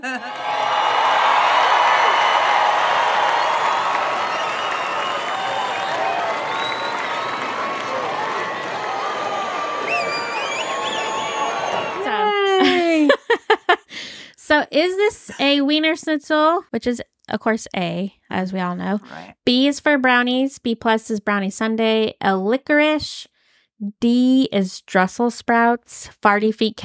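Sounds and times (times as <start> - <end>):
speech: 0.0 - 0.4, 14.5 - 26.8
laughter: 0.0 - 1.4, 11.7 - 13.9
applause edited in: 0.1 - 12.8.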